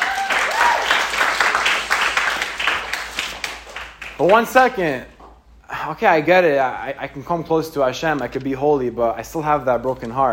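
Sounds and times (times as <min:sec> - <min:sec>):
round of applause: 0:00.0 - 0:04.5
speech: 0:04.2 - 0:05.1, 0:05.8 - 0:10.3.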